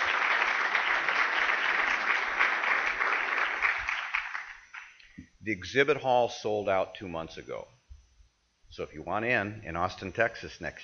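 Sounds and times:
audience applause: 0:00.0 - 0:04.9
speech: 0:05.5 - 0:07.8, 0:08.8 - 0:10.8.

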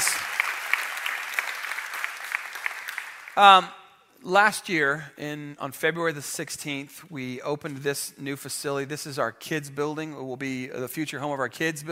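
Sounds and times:
audience clapping at a worship gathering: 0:00.0 - 0:03.6
speech: 0:03.4 - 0:11.9.

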